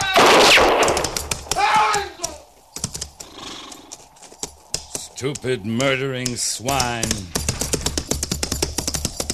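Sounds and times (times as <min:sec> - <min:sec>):
gunshot: 0:00.2 - 0:01.6
speech: 0:05.2 - 0:07.4.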